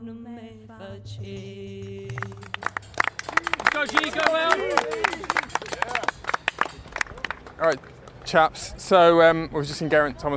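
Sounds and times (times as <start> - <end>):
speech: 0.7 - 2.4, 3.8 - 5.2, 7.6 - 10.3
roadside crowd applauding passing cyclist: 2.2 - 8.7.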